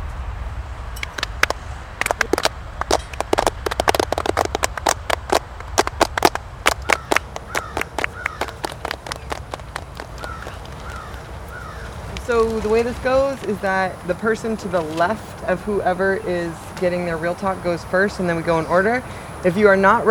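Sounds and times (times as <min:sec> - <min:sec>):
group clapping: 0:01.0 - 0:11.5
speech: 0:12.3 - 0:20.0.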